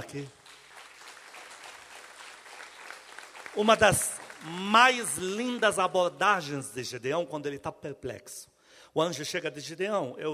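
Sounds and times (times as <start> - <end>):
speech: 0.0 - 0.4, 3.6 - 10.3
audience applause: 0.3 - 6.3.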